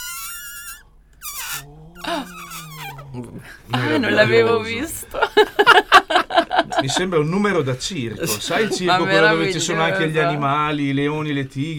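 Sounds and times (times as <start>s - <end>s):
balloon squealing as air escapes through its stretched neck: 0.0s - 3.2s
speech: 1.6s - 2.4s, 3.2s - 11.7s
laughter: 2.0s - 7.2s, 8.2s - 9.6s.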